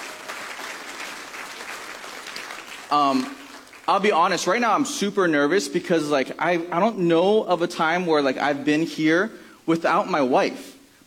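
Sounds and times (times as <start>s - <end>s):
audience applause: 0.0s - 4.1s
speech: 2.9s - 11.0s.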